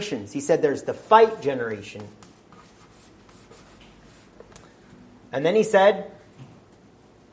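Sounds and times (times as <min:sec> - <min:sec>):
speech: 0:00.0 - 0:02.2, 0:05.3 - 0:06.2
writing on a board: 0:01.0 - 0:04.6.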